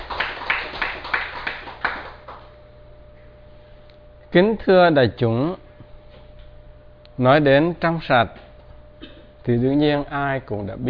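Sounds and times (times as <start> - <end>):
audience hand claps at a Buddhist dharma talk: 0.0 - 2.6
speech: 4.3 - 5.6, 7.2 - 8.4, 9.5 - 10.8.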